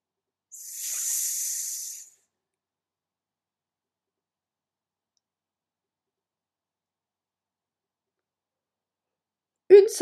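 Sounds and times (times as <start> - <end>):
hissing whistling exhale: 0.5 - 2.2.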